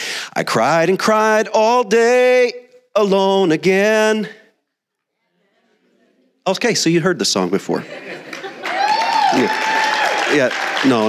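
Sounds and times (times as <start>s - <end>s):
speech: 0.4s - 4.4s, 6.4s - 8.4s, 9.3s - 9.6s, 10.3s - 11.0s
laughter: 5.2s - 6.4s, 7.4s - 9.5s
audience applause: 8.1s - 11.0s.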